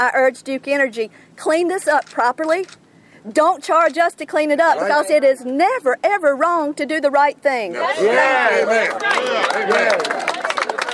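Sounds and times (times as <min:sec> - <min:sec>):
speech: 0:00.0 - 0:10.3
crowd cheering and shouting: 0:07.8 - 0:10.4
crowd applauding a speaker: 0:08.6 - 0:10.9.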